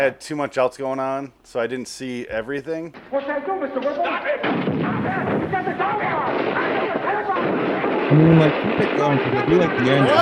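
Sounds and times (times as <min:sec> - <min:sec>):
speech: 0:00.0 - 0:06.6, 0:08.1 - 0:10.2
gunshots in a film scene: 0:02.9 - 0:10.2.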